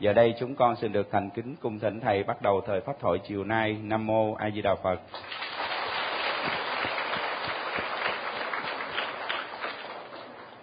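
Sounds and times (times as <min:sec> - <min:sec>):
speech: 0:00.0 - 0:05.7, 0:06.4 - 0:06.6
applause from attendees of a Buddhist Dharma talk at a retreat: 0:05.2 - 0:10.6.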